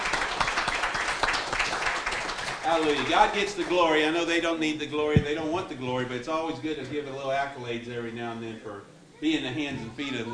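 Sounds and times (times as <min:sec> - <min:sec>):
audience applause: 0:00.0 - 0:03.9
speech: 0:02.7 - 0:10.3.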